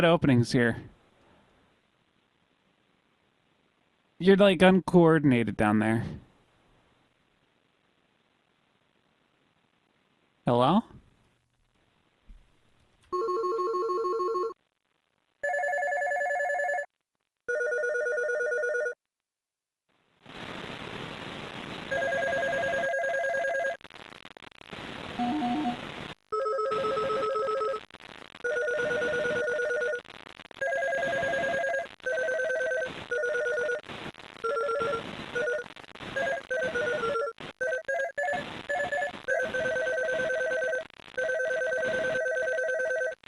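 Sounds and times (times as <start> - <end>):
speech: 0.0 - 1.0, 4.2 - 6.2, 10.5 - 10.9
telephone ringtone: 13.2 - 14.6, 15.4 - 16.9, 17.5 - 19.0, 21.9 - 23.8, 26.4 - 27.8, 28.4 - 30.0, 30.6 - 33.8, 34.4 - 35.6, 36.2 - 43.2.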